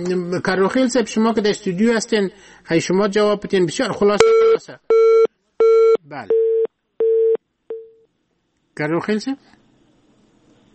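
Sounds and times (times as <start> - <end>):
speech: 0.0 - 5.1, 6.0 - 6.4, 8.8 - 9.6
telephone busy signal after a call is cut off: 5.0 - 8.0.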